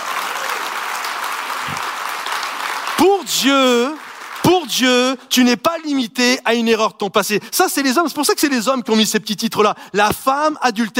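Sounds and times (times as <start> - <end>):
audience applauding: 0.0 - 5.5
speech: 3.0 - 4.0, 4.6 - 10.9.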